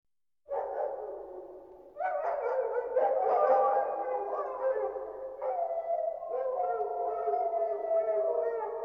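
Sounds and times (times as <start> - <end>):
wolves howling together: 2.0 - 8.8.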